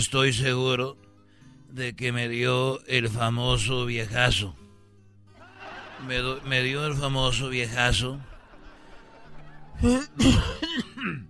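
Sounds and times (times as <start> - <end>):
speech: 0.0 - 1.0, 1.7 - 4.6, 6.0 - 8.3, 9.8 - 11.2
laughter: 5.4 - 10.7
harsh hoarse coughing: 9.8 - 11.2.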